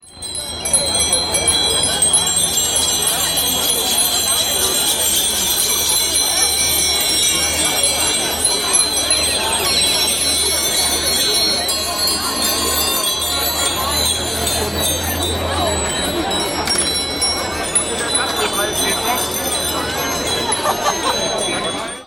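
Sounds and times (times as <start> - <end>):
bicycle bell concert: 0.0 - 22.0
laughter: 19.9 - 22.0.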